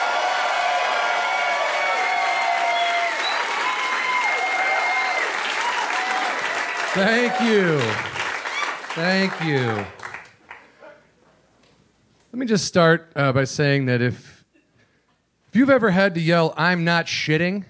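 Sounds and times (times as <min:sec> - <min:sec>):
scattered cheers and whoops: 0:00.0 - 0:08.9
audience applause for comedian: 0:00.0 - 0:10.7
speech: 0:07.0 - 0:08.1, 0:09.0 - 0:10.0, 0:12.4 - 0:14.3, 0:15.6 - 0:17.6.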